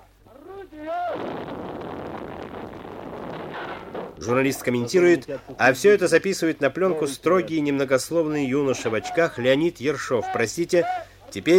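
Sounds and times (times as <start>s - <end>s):
artillery gun firing at a Soviet battery in 1943 before breaking the Leningrad blockade: 1.1s - 4.3s
speech: 4.2s - 11.5s
person shouting at a Soviet artillery battery: 10.2s - 11.2s.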